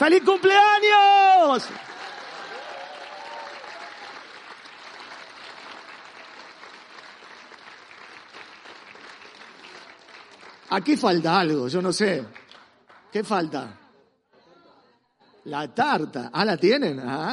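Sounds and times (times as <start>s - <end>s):
speech: 0.0s - 1.9s, 10.7s - 12.4s, 13.1s - 13.8s, 15.4s - 17.3s
audience applause: 0.0s - 13.2s
brief cheer: 0.9s - 4.2s.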